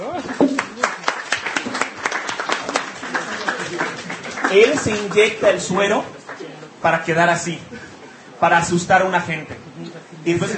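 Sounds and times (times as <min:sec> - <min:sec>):
audience applause: 0:00.0 - 0:06.6
speech: 0:04.5 - 0:06.1, 0:06.8 - 0:09.6, 0:10.2 - 0:10.5.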